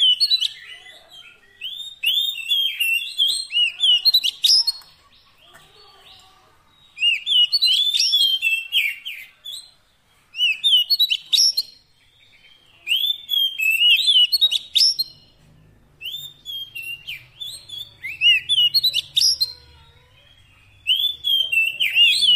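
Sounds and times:
Oriental magpie-robin song of varied whistles: 1.5s - 4.7s, 6.9s - 9.7s, 10.3s - 15.2s, 16.0s - 19.5s, 20.8s - 22.3s.

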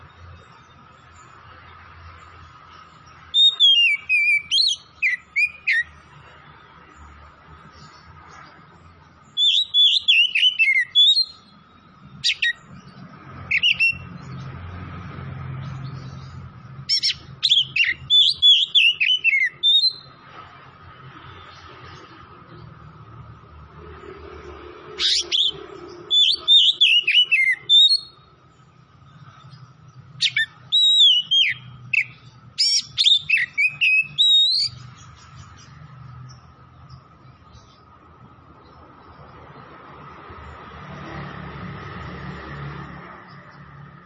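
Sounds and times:
oriental magpie-robin singing: 2.2s - 6.4s, 7.0s - 14.5s, 15.7s - 20.2s, 25.0s - 38.0s.

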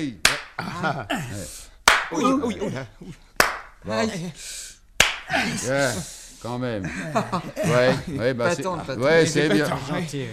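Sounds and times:
speech: 0.0s - 4.7s, 5.3s - 10.3s
slap across the face: 0.2s - 0.6s, 1.8s - 2.2s, 3.4s - 3.8s, 5.0s - 5.3s
laughter: 0.5s - 1.5s, 2.1s - 3.2s, 5.3s - 5.9s, 6.8s - 10.1s.

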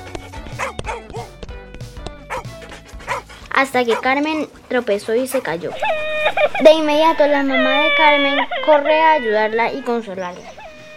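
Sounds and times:
playful dog barking while running after girls playing football: 0.0s - 1.4s, 2.3s - 4.2s
speech: 3.6s - 10.6s.

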